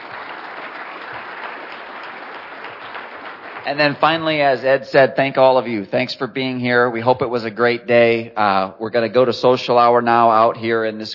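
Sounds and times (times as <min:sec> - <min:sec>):
audience applause: 0:00.0 - 0:04.6
speech: 0:03.6 - 0:11.1.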